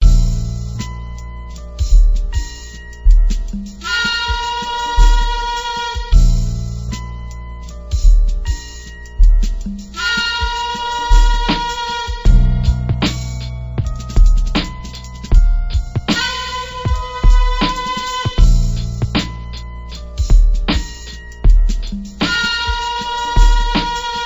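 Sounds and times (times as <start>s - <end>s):
music beat: 0.0s - 24.2s.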